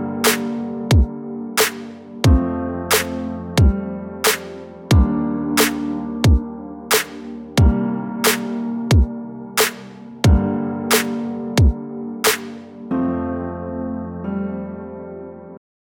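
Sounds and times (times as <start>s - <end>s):
beats: 0.2s - 12.6s.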